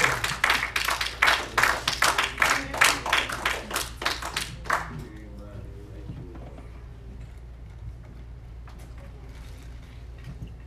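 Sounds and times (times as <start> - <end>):
audience clapping: 0.0 - 5.1.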